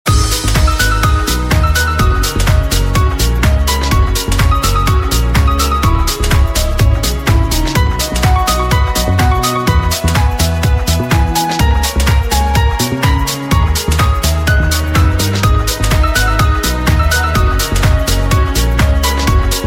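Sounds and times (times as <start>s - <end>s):
emotional piano music: 0.1s - 19.6s.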